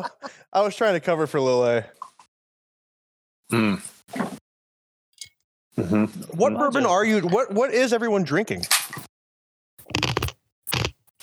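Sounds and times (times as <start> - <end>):
speech: 0.0 - 2.1, 3.5 - 4.3, 5.8 - 9.1
chewing ice: 9.8 - 11.2.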